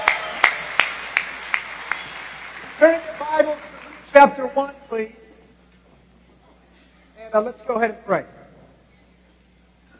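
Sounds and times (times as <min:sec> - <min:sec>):
sharp claps: 0:00.0 - 0:04.3
audience applause: 0:00.0 - 0:04.8
speech: 0:02.8 - 0:05.2, 0:07.3 - 0:08.4.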